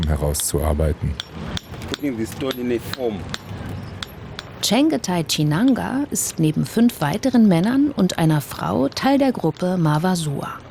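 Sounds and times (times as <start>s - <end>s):
speech: 0.1s - 3.5s, 4.6s - 10.6s
rhythmic hammering with hammer and punch on stone: 1.2s - 4.7s.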